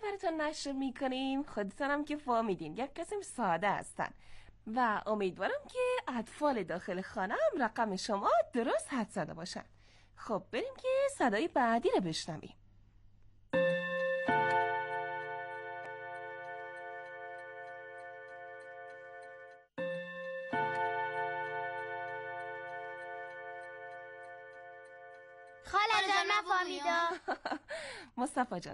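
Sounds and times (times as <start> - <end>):
speech: 0.2 - 12.6, 26.4 - 28.7
large clock chiming: 13.6 - 26.0.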